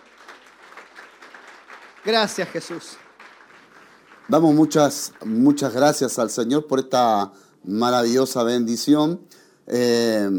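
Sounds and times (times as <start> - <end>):
audience applause: 0.0 - 5.8
speech: 2.0 - 3.1, 4.3 - 10.3.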